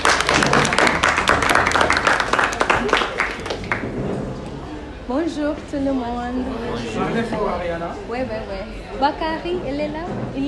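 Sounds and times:
audience applauding: 0.0s - 4.4s
faint murmur of voices: 2.1s - 10.4s
speech: 5.3s - 10.4s.

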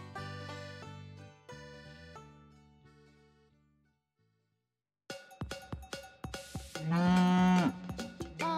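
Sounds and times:
cow mooing: 6.8s - 8.4s.

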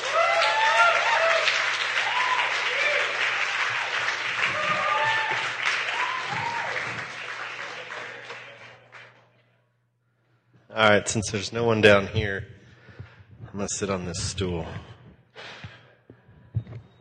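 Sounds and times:
church audience applause welcoming a speaker: 0.0s - 9.2s
speech: 10.8s - 12.6s, 13.6s - 14.9s.

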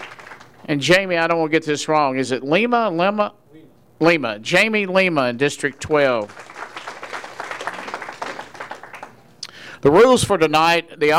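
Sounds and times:
audience applause: 0.0s - 0.6s, 5.6s - 9.2s
speech: 0.7s - 3.4s, 4.0s - 6.5s, 9.8s - 11.1s.

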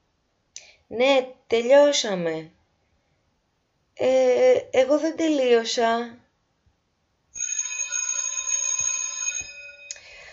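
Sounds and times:
speech: 0.9s - 2.6s, 4.0s - 6.2s
school bell ringing for break: 7.4s - 10.3s.

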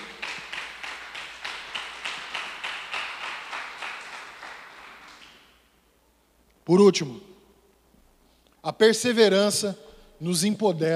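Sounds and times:
crowd clapping in rhythm: 0.0s - 5.7s
speech: 6.7s - 7.3s, 8.6s - 10.9s.

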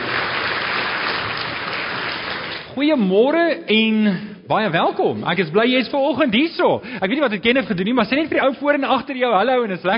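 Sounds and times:
audience clapping: 0.0s - 2.8s
speech: 2.8s - 9.9s.

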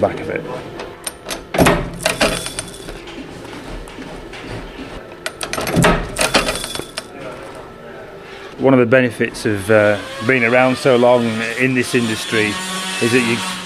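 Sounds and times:
speech: 0.0s - 0.8s, 8.6s - 13.5s
riveter fixing a plate onto a Carradice bag on an anvil: 0.8s - 7.2s.

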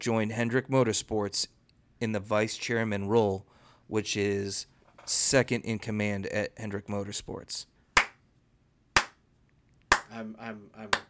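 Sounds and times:
speech: 0.0s - 7.7s, 10.1s - 11.0s
slow clapping: 8.0s - 8.2s, 9.0s - 9.2s, 9.9s - 10.1s.

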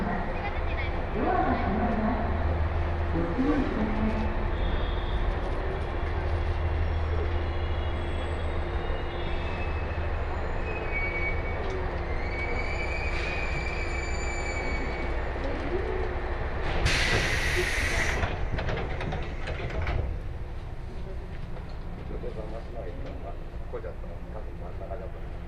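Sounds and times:
Sanyo Main Line train rumble from Okayama to Kurashiki: 0.0s - 25.4s.

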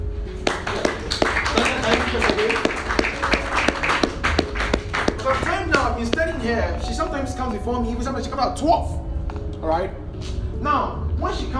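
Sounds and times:
people clapping: 0.4s - 6.0s
speech: 6.0s - 9.0s, 9.6s - 11.5s.

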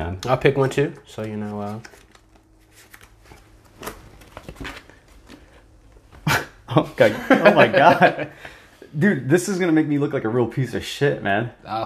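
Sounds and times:
speech: 0.2s - 2.0s, 6.8s - 11.8s
shuffling playing cards: 1.2s - 6.1s
laughter: 6.3s - 8.4s.

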